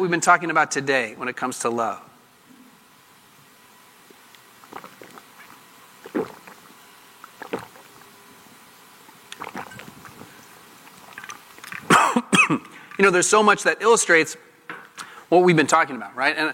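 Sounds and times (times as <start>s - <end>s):
speech: 0.0s - 2.1s, 13.0s - 14.5s, 15.3s - 16.5s
person sipping and swallowing a glass of water: 4.0s - 8.2s, 9.0s - 11.9s.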